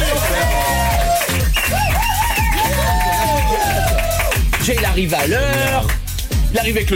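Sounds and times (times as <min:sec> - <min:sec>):
whoops and cheers: 0:00.0 - 0:04.5
audience applause: 0:00.0 - 0:05.9
rhythmic low beat: 0:00.0 - 0:06.9
speech: 0:04.7 - 0:06.9.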